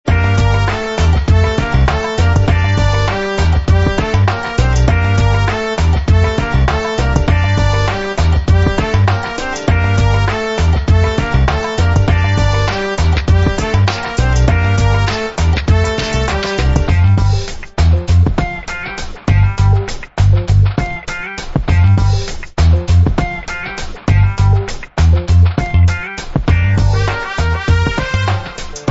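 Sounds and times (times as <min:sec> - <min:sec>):
Bay Area hip hop beat: 0:00.1 - 0:28.8.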